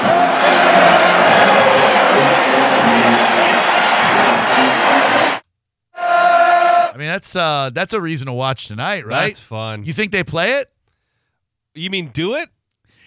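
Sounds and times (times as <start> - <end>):
huge stadium crowd chanting and cheering: 0.0 - 5.4, 6.0 - 6.9
speech: 7.2 - 10.8, 11.8 - 12.6.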